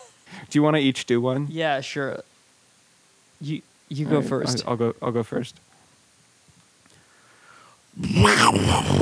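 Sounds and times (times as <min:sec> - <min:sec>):
speech: 0:00.5 - 0:02.3, 0:03.4 - 0:05.7, 0:08.0 - 0:09.0
person imitating saber-toothed tiger roar: 0:08.0 - 0:09.0.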